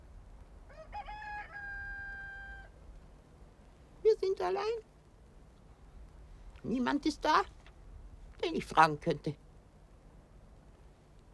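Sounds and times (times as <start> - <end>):
low hum: 0.0 - 11.3
rooster crowing: 0.7 - 2.8
speech: 4.2 - 4.9, 6.6 - 7.6, 8.4 - 9.4.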